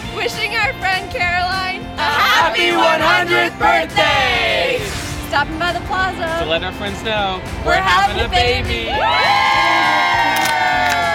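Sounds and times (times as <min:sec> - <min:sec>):
speech: 0:00.2 - 0:01.8, 0:02.4 - 0:10.1
large crowd cheering on the plaza: 0:08.3 - 0:11.1
whoops and shouts: 0:08.8 - 0:11.1.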